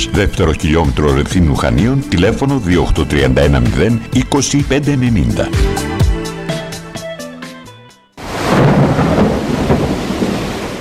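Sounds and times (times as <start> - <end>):
speech: 0.0 - 5.9
heavy downpour: 8.2 - 10.8
thunder: 8.2 - 10.8.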